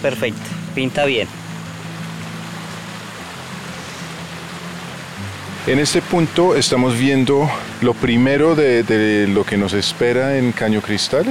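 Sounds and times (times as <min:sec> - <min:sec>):
speech: 0:00.0 - 0:01.4, 0:05.6 - 0:11.2
spring water flowing: 0:00.0 - 0:11.2.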